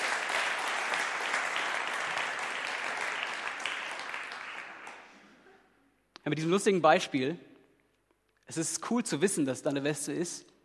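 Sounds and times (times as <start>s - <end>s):
audience applause: 0.0s - 5.1s
speech: 6.3s - 7.5s, 8.5s - 10.6s.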